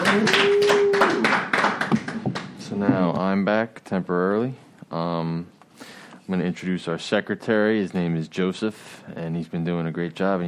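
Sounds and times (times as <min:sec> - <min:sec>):
audience applause: 0:00.0 - 0:02.6
speech: 0:00.2 - 0:00.4, 0:03.4 - 0:10.4.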